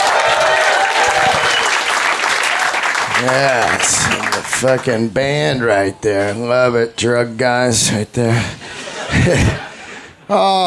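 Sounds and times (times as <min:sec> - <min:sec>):
audience applause: 0:00.0 - 0:05.0
speech: 0:03.2 - 0:09.6, 0:10.3 - 0:10.6
laughter: 0:08.3 - 0:10.6.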